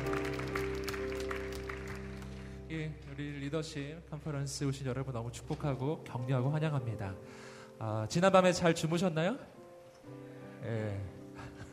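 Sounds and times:
audience clapping: 0.0s - 2.7s
sustained keyboard chords: 0.0s - 7.2s
speech: 2.7s - 11.7s.

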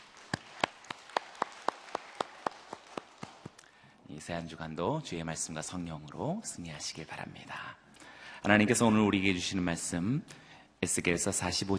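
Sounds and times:
audience clapping in unison: 0.0s - 3.6s
speech: 4.1s - 7.8s, 8.4s - 11.7s.

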